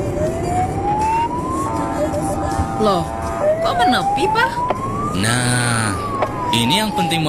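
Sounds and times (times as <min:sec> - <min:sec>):
emergency vehicle siren: 0:00.0 - 0:07.2
speech: 0:02.8 - 0:07.2.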